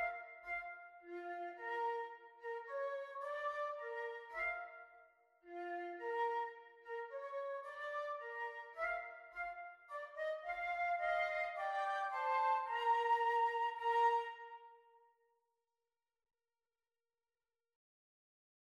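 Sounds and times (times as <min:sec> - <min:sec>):
flute duet: 0:00.0 - 0:14.8.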